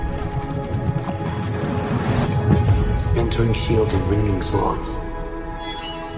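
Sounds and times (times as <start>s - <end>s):
horse hooves galloping: 0.0s - 2.9s
speech: 3.4s - 5.1s.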